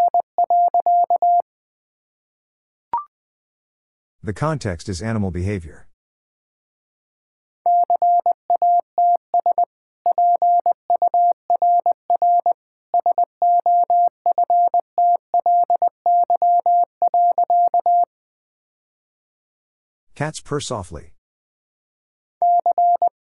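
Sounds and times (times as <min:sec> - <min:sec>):
Morse code tones at 20 words per minute: 0:00.0 - 0:01.4, 0:07.7 - 0:18.1, 0:22.4 - 0:23.2
speech: 0:04.2 - 0:05.9, 0:20.2 - 0:21.1.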